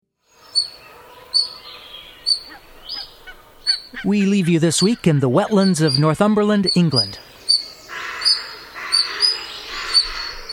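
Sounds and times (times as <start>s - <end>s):
pair of European otters making high-pitched squeaking calls: 2.2s - 10.5s
speech: 4.0s - 7.3s.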